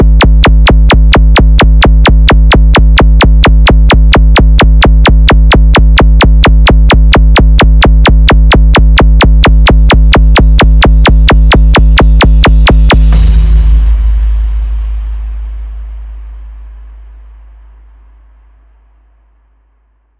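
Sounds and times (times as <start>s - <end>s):
new beat remix music: 0.0s - 16.1s.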